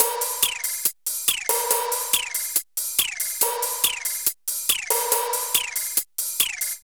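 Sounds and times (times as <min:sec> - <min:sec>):
drum loops: 0:00.0 - 0:06.8.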